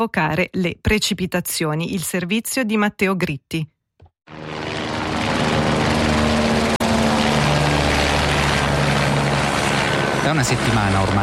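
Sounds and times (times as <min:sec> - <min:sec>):
speech: 0:00.0 - 0:03.7, 0:10.3 - 0:11.2
firefighting helicopters and Canadair water-bomber engines droning over a lake: 0:04.3 - 0:11.2.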